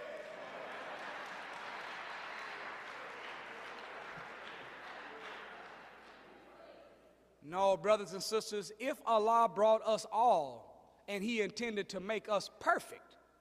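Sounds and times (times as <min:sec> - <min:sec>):
audience applause: 0:00.0 - 0:06.4
speech: 0:07.4 - 0:13.2.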